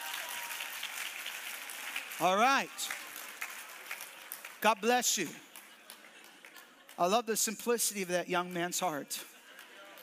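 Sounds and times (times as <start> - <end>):
audience applause: 0.0 - 7.1
speech: 2.2 - 3.0, 4.6 - 5.5, 7.0 - 9.3.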